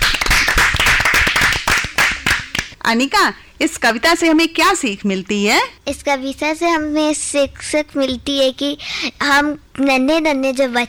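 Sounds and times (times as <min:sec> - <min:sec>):
crowd applause for a child's patriotic poem recital: 0:00.0 - 0:02.7
speech: 0:02.9 - 0:10.8.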